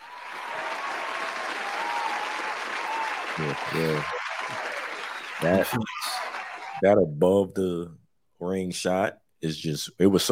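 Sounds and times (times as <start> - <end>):
applause: 0.0 - 6.8
speech: 3.4 - 4.2, 5.4 - 6.2, 6.8 - 10.3.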